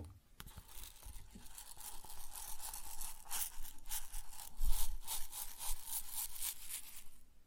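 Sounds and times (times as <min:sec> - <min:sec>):
grain pouring and rustling: 0:00.5 - 0:07.2.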